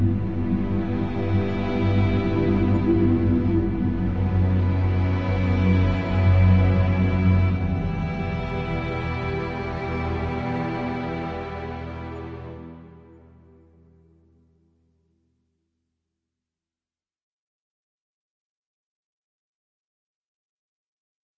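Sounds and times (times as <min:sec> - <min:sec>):
foreboding ambient music: 0:00.0 - 0:14.7.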